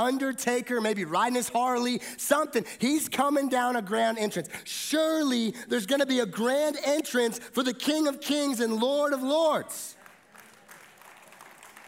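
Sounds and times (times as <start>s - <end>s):
speech: 0.0s - 10.0s
audience clapping: 9.9s - 11.8s.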